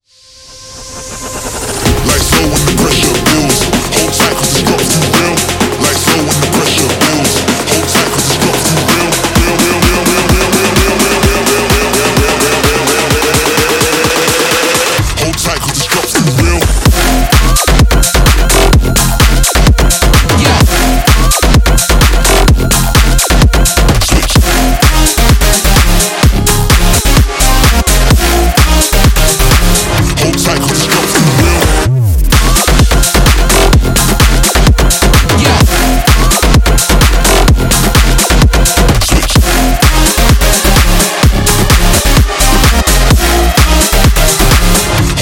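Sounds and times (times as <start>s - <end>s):
construction kit full music mix: 0.2s - 45.2s.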